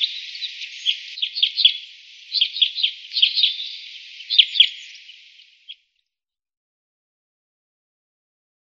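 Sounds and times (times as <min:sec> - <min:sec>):
chanting: 0:00.0 - 0:05.8.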